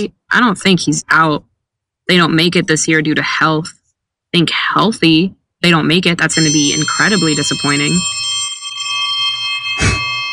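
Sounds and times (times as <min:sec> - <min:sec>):
speech: 0:00.0 - 0:01.5, 0:02.1 - 0:08.4
bell ringing: 0:06.3 - 0:10.3.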